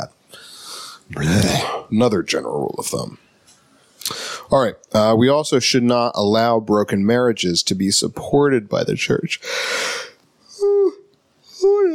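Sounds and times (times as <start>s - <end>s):
speech: 1.1s - 3.3s, 4.5s - 9.9s
person yawning: 10.0s - 11.9s.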